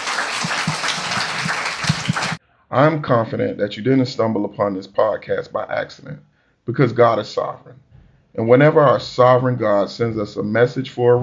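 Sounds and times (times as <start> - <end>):
audience hand clapping: 0.0 - 2.4
speech: 2.8 - 11.2.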